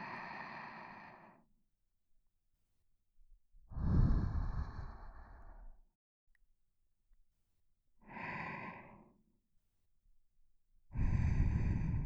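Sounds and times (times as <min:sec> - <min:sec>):
person breathing in sleep: 0:00.0 - 0:01.5, 0:03.7 - 0:05.8, 0:08.0 - 0:09.2, 0:10.9 - 0:12.0.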